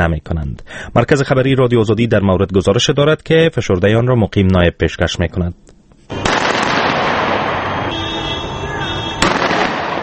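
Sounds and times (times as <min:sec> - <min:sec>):
speech: 0:00.0 - 0:05.7
gunfire in Tripoli, Libya: 0:06.1 - 0:07.9, 0:09.2 - 0:10.0.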